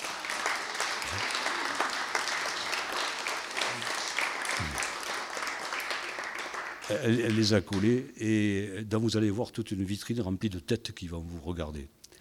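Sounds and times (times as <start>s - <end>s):
crowd applauding: 0.0s - 7.9s
audience murmuring: 1.0s - 2.7s
speech: 6.9s - 12.0s.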